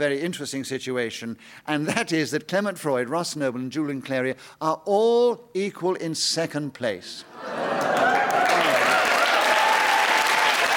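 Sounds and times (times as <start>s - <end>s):
speech: 0.0s - 8.1s
audience applause: 7.4s - 10.7s.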